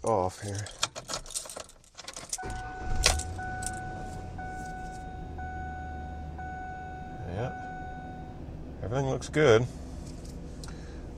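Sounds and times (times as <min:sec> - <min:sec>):
speech: 0:00.3 - 0:00.8, 0:08.9 - 0:09.8
car engine starting up: 0:02.3 - 0:11.1.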